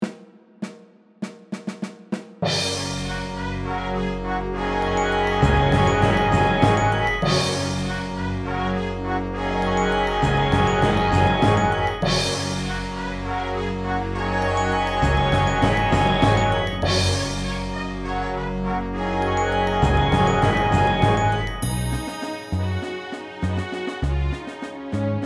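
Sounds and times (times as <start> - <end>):
backing track in F: 2.4 - 25.0.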